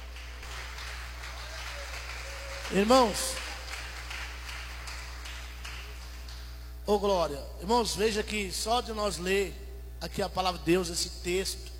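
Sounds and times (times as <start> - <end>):
audience applauding: 0.0 - 6.5
speech: 2.7 - 3.4, 6.9 - 11.7.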